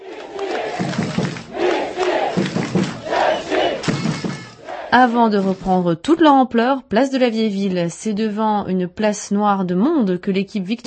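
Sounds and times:
hockey fans cheering at airport: 0.0s - 5.6s
speech: 4.9s - 10.8s.

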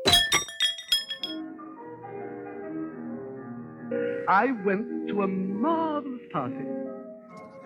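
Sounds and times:
bell ringing: 0.1s - 1.4s
speech: 4.3s - 7.0s.

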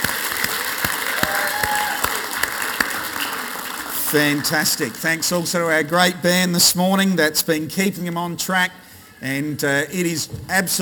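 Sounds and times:
audience applause: 0.0s - 6.2s
speech: 4.1s - 10.8s.

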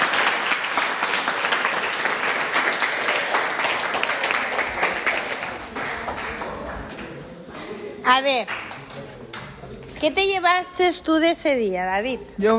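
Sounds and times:
audience applause: 0.0s - 7.2s
speech: 8.1s - 8.6s, 10.0s - 12.5s.

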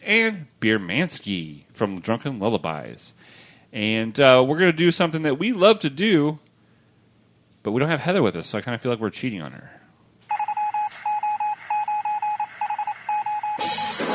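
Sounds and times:
speech: 0.1s - 6.4s, 7.6s - 9.8s
news wire beeping intro: 10.3s - 14.0s.

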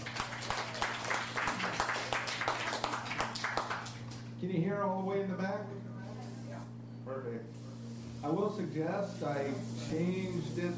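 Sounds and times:
audience applause: 0.0s - 4.2s
speech: 4.4s - 5.9s, 7.1s - 7.6s, 8.2s - 10.7s.

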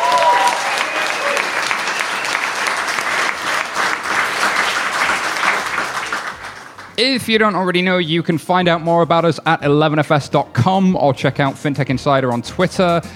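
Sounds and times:
audience cheering: 0.0s - 7.6s
speech: 7.0s - 13.1s.

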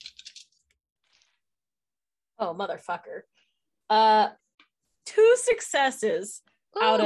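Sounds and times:
dice being rolled: 0.0s - 0.7s
speech: 2.4s - 4.4s, 5.1s - 7.0s.

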